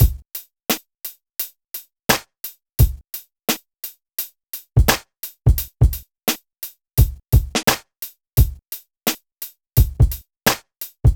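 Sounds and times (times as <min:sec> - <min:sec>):
hip hop drums: 0:00.0 - 0:00.8, 0:02.1 - 0:03.1, 0:04.8 - 0:06.4, 0:07.0 - 0:11.1.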